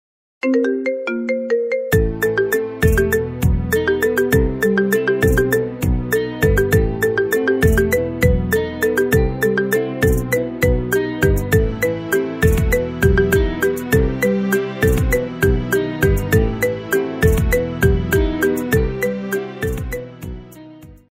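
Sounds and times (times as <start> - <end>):
marimba remix: 0.4 - 21.0.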